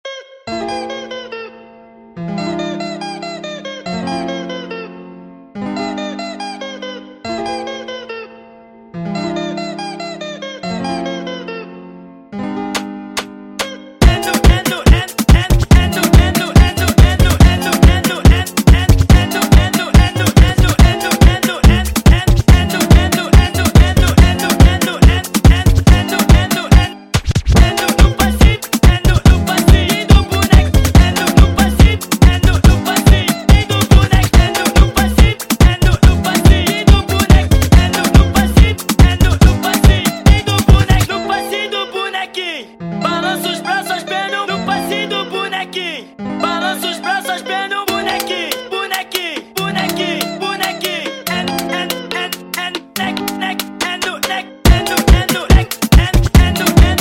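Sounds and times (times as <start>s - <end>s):
super sped-up funk music: 12.6s - 41.1s, 47.3s - 56.9s.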